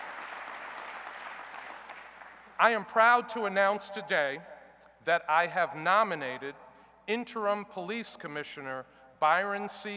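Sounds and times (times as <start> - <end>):
audience applauding United States senators at a Buffalo public announcement: 0.0 - 2.5
speech: 2.6 - 9.9.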